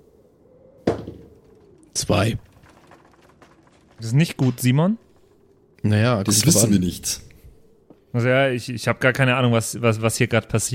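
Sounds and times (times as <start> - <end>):
eight-sided die being rolled: 0.8 - 7.5
speech: 2.0 - 2.5, 4.0 - 5.0, 5.8 - 7.3, 8.1 - 10.7.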